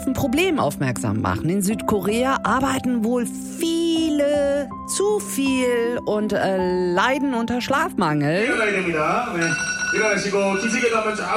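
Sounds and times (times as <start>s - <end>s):
speech: 0.2s - 11.3s
alarm clock ringing: 8.6s - 11.3s.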